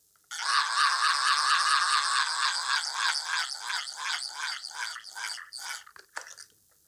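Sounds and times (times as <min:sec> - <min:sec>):
bosduivel forest devil instrument raspy wail: 0:00.4 - 0:05.0.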